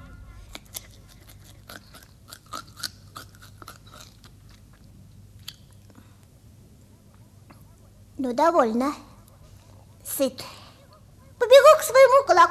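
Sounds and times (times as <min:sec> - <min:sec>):
hare crunching and chewing cabbage: 0:00.0 - 0:06.2
low hum: 0:00.0 - 0:12.4
speech: 0:08.2 - 0:09.1, 0:10.2 - 0:10.5.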